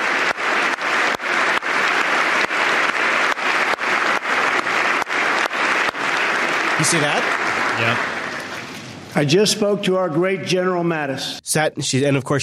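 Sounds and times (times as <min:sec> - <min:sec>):
loud clapping into a microphone: 0:00.0 - 0:08.7
crowd applause: 0:00.0 - 0:09.3
speech: 0:06.8 - 0:08.1, 0:09.2 - 0:12.4.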